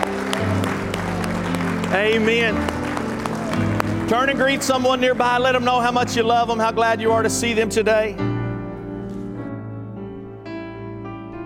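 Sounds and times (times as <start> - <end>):
audience hand clapping in praise: 0.0 - 6.3
speech: 1.9 - 2.8, 4.1 - 8.3.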